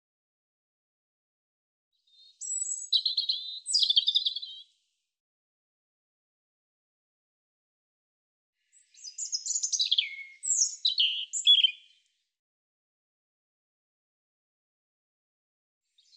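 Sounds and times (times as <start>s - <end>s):
European robin song of high thin warbles and trills: 2.1s - 4.6s, 8.8s - 11.9s.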